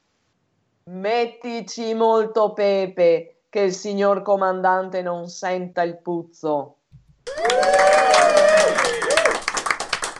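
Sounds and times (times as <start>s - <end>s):
speech: 0.9s - 9.0s
audience applause: 7.3s - 10.1s.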